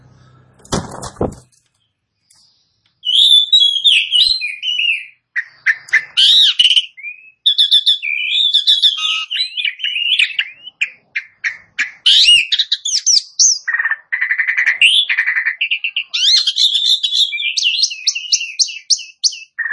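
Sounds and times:
Asian pied starling song: 0.0 - 19.7.

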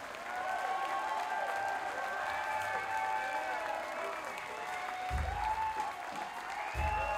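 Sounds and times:
audience applause: 0.0 - 7.1
crowd cheering: 0.0 - 7.1
low thumps: 5.1 - 5.7
whistle-like calls: 6.6 - 7.1.

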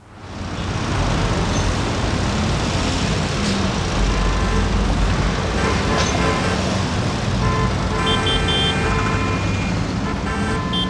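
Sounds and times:
dense street traffic roaring in New York: 0.0 - 10.8
car horns honking: 4.1 - 10.8.

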